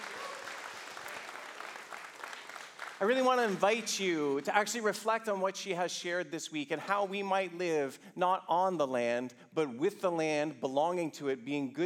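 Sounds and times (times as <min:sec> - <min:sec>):
audience applause: 0:00.0 - 0:03.8
speech: 0:03.0 - 0:11.8.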